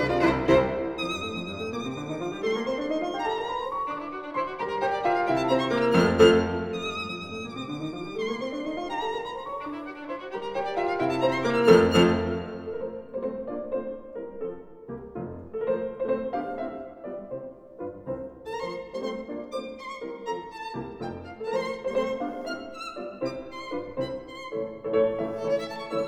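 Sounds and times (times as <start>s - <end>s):
violin playing a sonata scherzo: 0.0s - 13.2s, 18.5s - 26.0s
piano playing a sonata scherzo: 0.0s - 26.0s.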